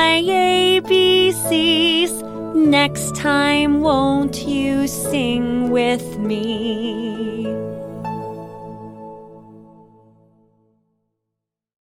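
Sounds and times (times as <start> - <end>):
songs: 0.0 - 8.7.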